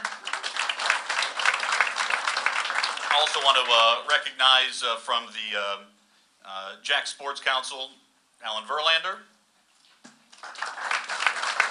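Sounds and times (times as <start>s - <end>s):
audience applause: 0.0s - 3.9s, 10.4s - 11.7s
speech: 3.2s - 9.3s.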